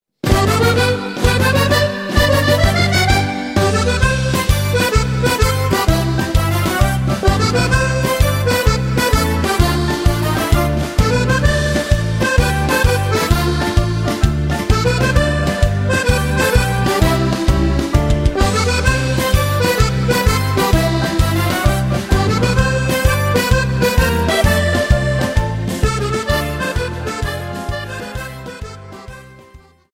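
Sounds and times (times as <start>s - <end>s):
musette accordion tarantella: 0.2s - 29.9s.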